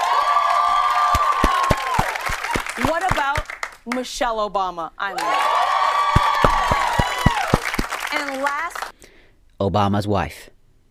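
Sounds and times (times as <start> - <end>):
audience applause and cheering: 0.0 - 3.8, 5.2 - 8.9
speech: 3.9 - 5.5, 8.1 - 8.9, 9.6 - 10.5.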